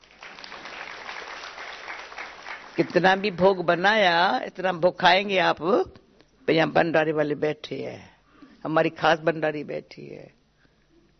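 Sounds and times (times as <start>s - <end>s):
audience clapping at a class gathering: 0.0s - 3.8s
speech: 2.8s - 10.4s.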